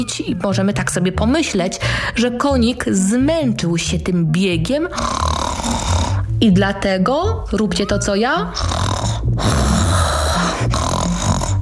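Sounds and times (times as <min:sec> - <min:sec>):
speech: 0:00.0 - 0:09.6
person imitating snoring: 0:04.9 - 0:06.3, 0:08.4 - 0:11.6.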